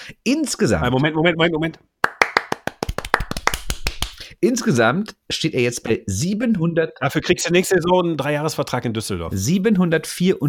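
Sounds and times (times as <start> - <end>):
speech: 0.2 - 1.9, 4.4 - 10.4
small group hand clapping: 2.0 - 4.3.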